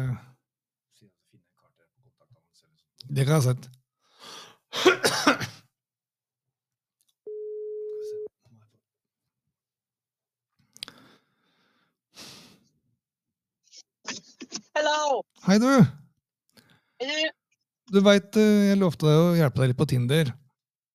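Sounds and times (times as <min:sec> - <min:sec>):
speech: 0:02.2 - 0:05.6, 0:14.8 - 0:16.0, 0:17.0 - 0:20.4
throat clearing: 0:04.8 - 0:05.6
telephone ringback beep on an outgoing call: 0:07.3 - 0:08.3.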